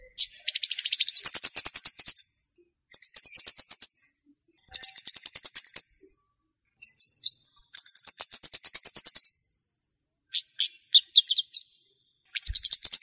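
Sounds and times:
flowerpecker ticking call series: 0:00.0 - 0:02.3, 0:02.9 - 0:04.0, 0:04.8 - 0:05.9, 0:06.8 - 0:09.4, 0:10.3 - 0:11.7, 0:12.4 - 0:13.0.

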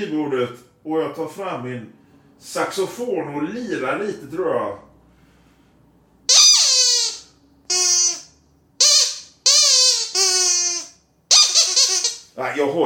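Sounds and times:
speech: 0:00.0 - 0:04.8, 0:12.6 - 0:12.8
old duck-shaped bicycle horn squeaking: 0:06.3 - 0:12.4.

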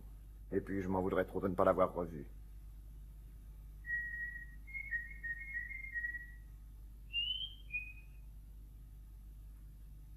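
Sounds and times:
speech: 0:00.5 - 0:02.4
nightingale song: 0:03.8 - 0:08.3.

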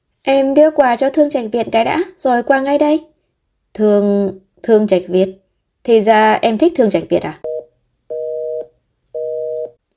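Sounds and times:
speech: 0:00.3 - 0:03.1, 0:03.8 - 0:07.5
mobile phone busy signal beeps: 0:07.4 - 0:09.8.

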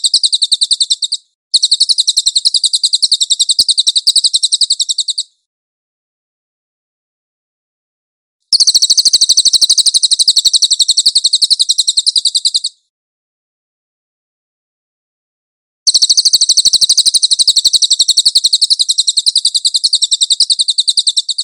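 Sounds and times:
cililin trilled chirps: 0:00.0 - 0:05.4, 0:08.5 - 0:12.9, 0:15.9 - 0:21.4.

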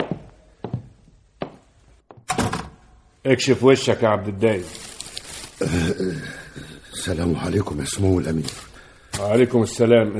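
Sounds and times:
door being shut: 0:02.2 - 0:02.9
speech: 0:03.2 - 0:04.9, 0:05.6 - 0:06.4, 0:07.0 - 0:10.1.

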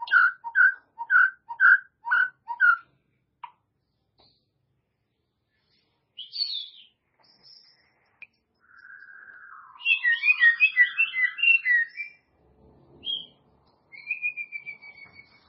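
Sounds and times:
White-rumped shama song with whistles: 0:00.0 - 0:02.8, 0:06.2 - 0:07.8, 0:08.6 - 0:12.3, 0:13.0 - 0:15.4.

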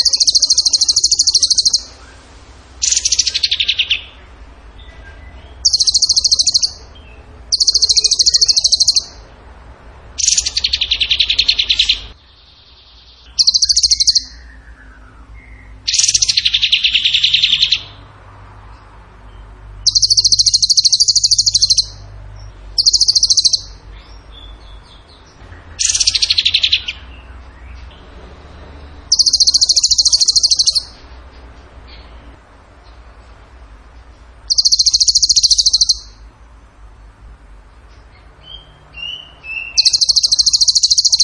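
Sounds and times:
tembakan bird trilling: 0:00.0 - 0:02.2, 0:02.8 - 0:04.2, 0:05.4 - 0:09.2, 0:10.2 - 0:12.2, 0:13.2 - 0:18.0, 0:19.8 - 0:22.0, 0:22.8 - 0:25.2, 0:25.8 - 0:27.3, 0:29.0 - 0:31.0, 0:34.4 - 0:36.3, 0:38.5 - 0:41.2.

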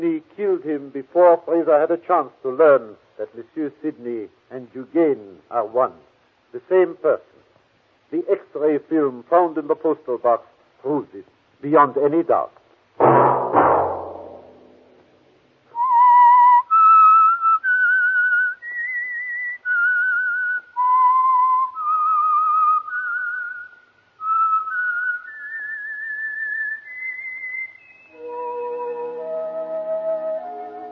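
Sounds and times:
speech: 0:00.0 - 0:07.3, 0:08.1 - 0:13.4
whistled signal tune: 0:15.8 - 0:30.8.

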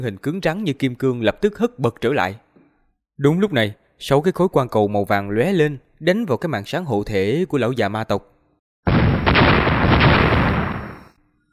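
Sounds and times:
speech: 0:00.0 - 0:02.4, 0:03.2 - 0:08.3
explosion sound effect: 0:08.9 - 0:11.2.

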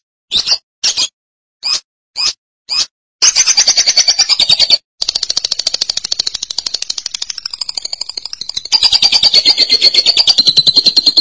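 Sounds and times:
lovebird chattering: 0:02.7 - 0:11.1.

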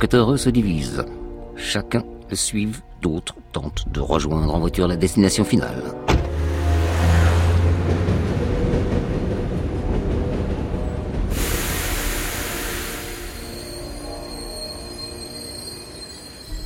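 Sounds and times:
speech: 0:00.0 - 0:06.1
train running on rails: 0:06.3 - 0:16.6.

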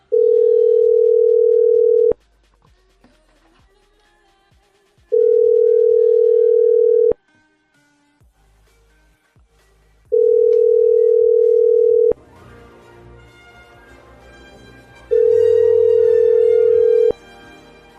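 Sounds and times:
phone ringback tone while calling: 0:00.0 - 0:02.2, 0:05.2 - 0:07.2, 0:10.1 - 0:12.2, 0:15.1 - 0:17.2
faint music: 0:00.0 - 0:17.9.

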